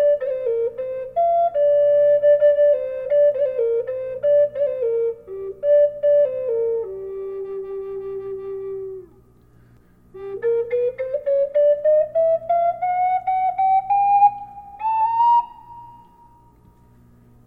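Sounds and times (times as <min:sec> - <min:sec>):
flute with reverb: 0:00.0 - 0:09.2, 0:10.1 - 0:16.9.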